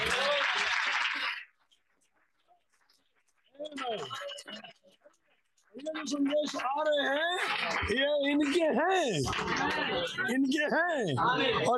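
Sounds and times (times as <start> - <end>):
audience clapping: 0.0 - 2.2, 5.8 - 10.1
speech: 3.9 - 4.3, 5.8 - 11.7.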